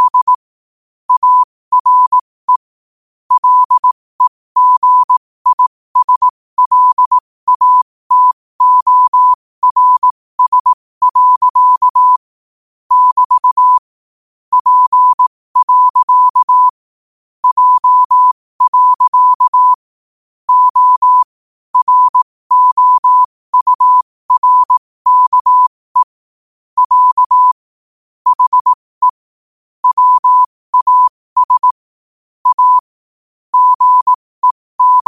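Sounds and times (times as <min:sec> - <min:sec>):
morse code at 5 wpm: 0:00.0 - 0:00.4, 0:01.1 - 0:02.7, 0:03.3 - 0:12.2, 0:12.9 - 0:13.9, 0:14.5 - 0:16.8, 0:17.4 - 0:19.8, 0:20.5 - 0:26.2, 0:26.8 - 0:27.6, 0:28.2 - 0:29.2, 0:29.8 - 0:31.8, 0:32.4 - 0:32.9, 0:33.5 - 0:35.0.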